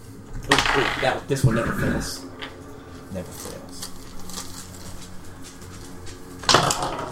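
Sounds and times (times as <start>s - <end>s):
d20 die rolling through a dice tower: 0.4s - 2.5s, 6.5s - 7.0s
speech: 0.8s - 2.3s, 3.1s - 3.7s.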